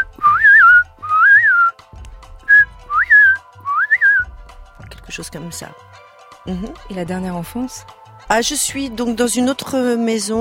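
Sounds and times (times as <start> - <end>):
person whistling an imitation of blackbird song: 0.0 - 1.8, 2.5 - 4.3
speech: 5.2 - 10.3.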